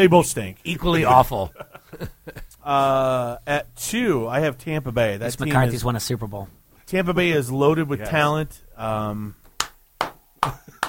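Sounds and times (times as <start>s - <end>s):
speech: 0.0s - 9.4s, 10.4s - 10.8s
laughter: 0.9s - 3.3s
hand clap: 9.4s - 10.8s.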